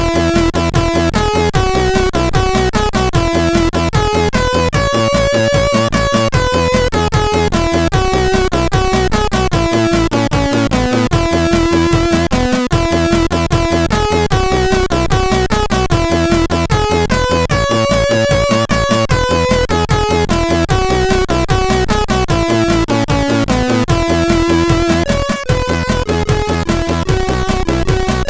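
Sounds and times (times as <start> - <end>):
tune on a SID CSG8580R5 sound chip: 0.0 - 28.2.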